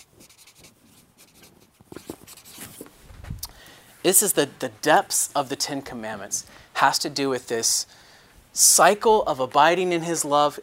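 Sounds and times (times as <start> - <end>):
marker writing a word on a board: 0.0 - 2.9
speech: 4.0 - 8.0, 8.6 - 10.6.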